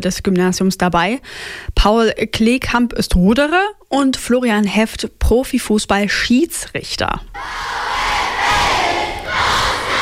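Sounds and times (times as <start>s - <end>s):
speech: 0.0s - 7.8s
crowd of school pupils cheering and whooping in a Gymnasium assembly hall: 7.4s - 10.0s.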